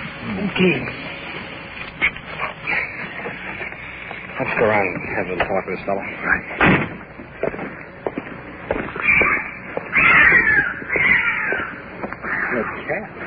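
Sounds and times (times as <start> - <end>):
speech: 0.3 - 1.1, 4.6 - 6.8
cat yowling harshly: 8.9 - 12.8.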